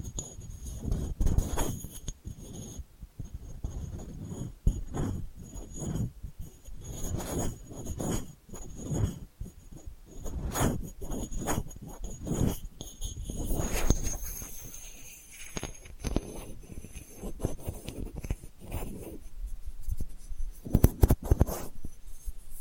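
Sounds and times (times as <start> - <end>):
delicate scratching: 0.0 - 22.6.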